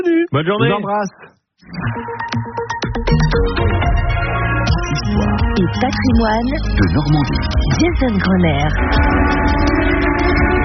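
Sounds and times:
speech: 0.0s - 3.7s, 5.6s - 9.7s
factory siren wailing: 3.6s - 10.6s.

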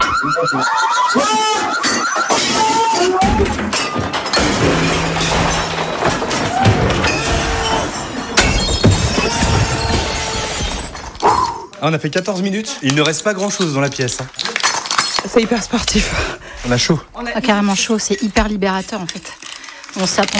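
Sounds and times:
speech: 0.2s - 2.4s, 11.8s - 14.5s, 15.3s - 20.3s
dishes and other objects being smashed: 3.2s - 11.2s, 13.7s - 16.0s
clattering debris: 3.2s - 11.3s, 12.8s - 20.3s.

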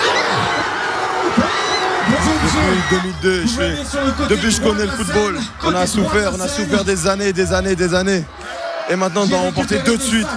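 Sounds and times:
football supporters cheering and shouting joyfully: 0.0s - 10.3s
speech: 2.5s - 10.3s.

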